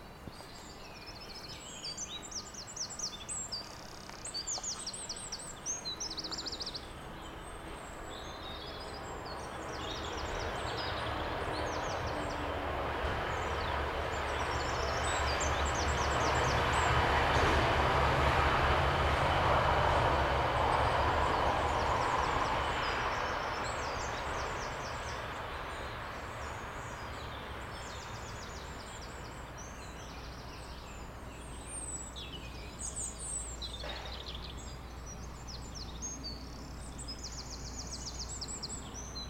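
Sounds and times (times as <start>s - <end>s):
forest soundscape: 0.0s - 39.2s.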